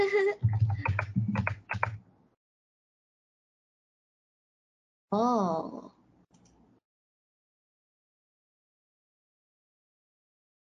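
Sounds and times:
typing on a computer keyboard: 0.4s - 2.0s
speech: 5.1s - 5.9s.

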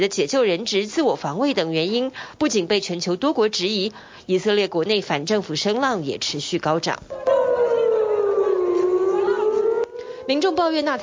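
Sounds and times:
speech: 0.0s - 7.3s, 10.3s - 11.0s
air raid siren: 7.1s - 11.0s.

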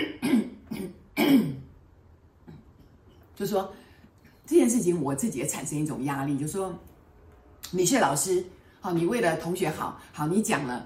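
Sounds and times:
cough: 0.0s - 1.8s
speech: 3.4s - 3.8s, 4.5s - 6.9s, 7.7s - 10.8s.

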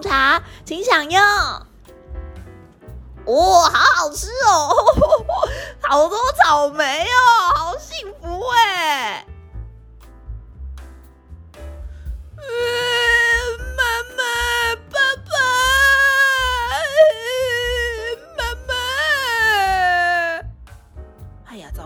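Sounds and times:
speech: 0.0s - 1.7s, 3.2s - 9.3s
low steady thumping: 0.0s - 21.8s
child crying: 12.4s - 20.4s.

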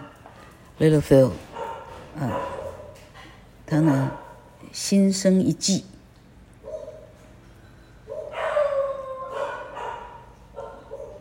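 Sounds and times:
speech: 0.8s - 1.5s, 2.2s - 2.6s, 3.7s - 6.0s
dog barking at a parking lot: 1.5s - 3.1s, 3.8s - 4.5s, 6.6s - 7.2s, 8.1s - 11.1s.

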